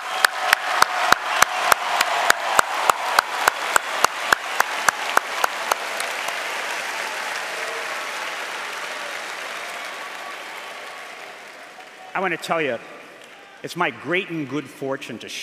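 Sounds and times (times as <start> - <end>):
audience applause: 0.0 - 14.2
speech: 12.2 - 13.0, 13.6 - 15.4.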